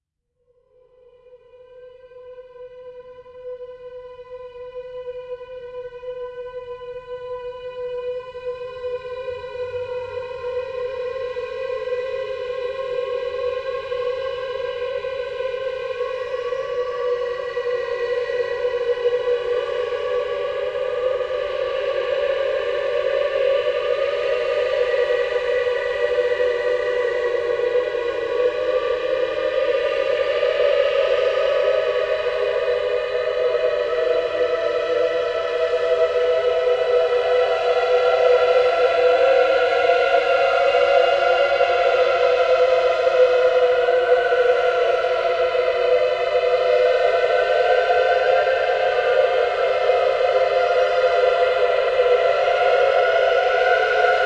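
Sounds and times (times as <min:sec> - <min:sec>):
choir singing: 0:01.2 - 0:54.2.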